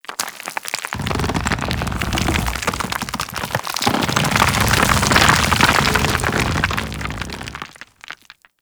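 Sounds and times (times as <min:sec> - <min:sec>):
golem melee death sound: 0:01.0 - 0:07.8.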